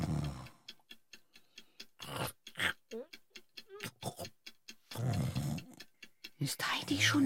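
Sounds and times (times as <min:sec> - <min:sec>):
loud snoring: 0:00.0 - 0:00.5, 0:04.9 - 0:05.8
speech: 0:02.9 - 0:03.2, 0:06.4 - 0:07.2.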